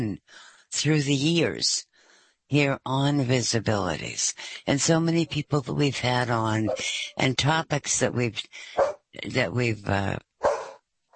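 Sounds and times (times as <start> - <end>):
speech: 0.0 - 1.9, 2.5 - 10.3
dog barking: 8.8 - 9.0, 10.4 - 10.8.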